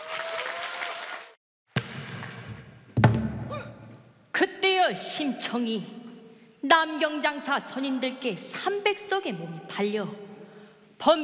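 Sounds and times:
audience applause welcoming performers: 0.0 - 1.4
speech: 4.4 - 6.0, 6.6 - 10.2, 11.0 - 11.2.

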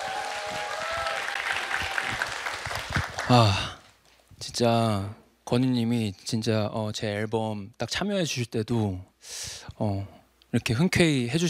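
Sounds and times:
audience applause: 0.0 - 3.8
speech: 3.3 - 3.7, 4.4 - 11.4.

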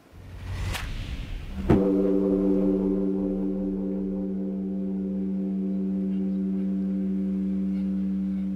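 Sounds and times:
large Korean temple bell ringing: 1.8 - 8.5.

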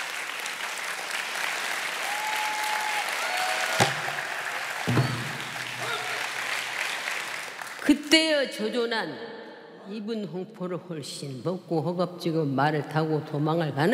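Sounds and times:
audience applause: 0.0 - 7.9
speech: 7.9 - 13.9.

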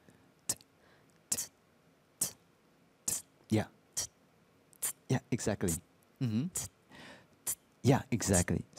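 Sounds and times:
voice imitating a basic hi-hat drum sound: 0.4 - 0.7, 1.3 - 1.6, 2.2 - 2.4, 3.0 - 4.2, 4.8 - 6.8, 7.4 - 8.7
speech: 3.5 - 3.8, 5.4 - 6.7, 7.8 - 8.7.

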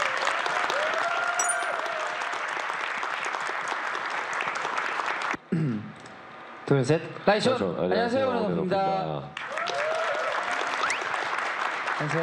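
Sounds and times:
audience applause: 0.0 - 5.4, 9.4 - 12.2
speech: 6.7 - 9.4, 12.0 - 12.2.

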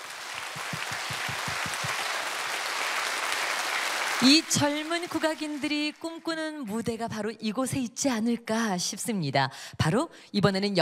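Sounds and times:
audience applause: 0.0 - 6.2
speech: 4.2 - 10.7.

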